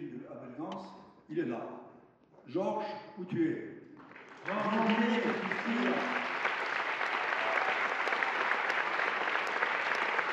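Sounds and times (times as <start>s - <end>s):
speech: 0.8s - 1.8s, 2.5s - 3.7s, 4.4s - 6.2s
crowd applauding: 4.0s - 10.3s.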